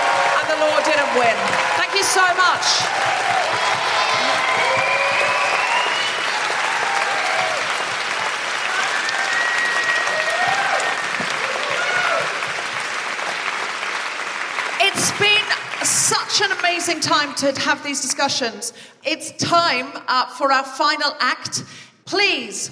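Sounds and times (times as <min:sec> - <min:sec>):
audience applause at a comedy and music benefit show for Reclaim These Streets: 0:00.0 - 0:16.9
speech: 0:00.6 - 0:04.9, 0:16.4 - 0:22.7.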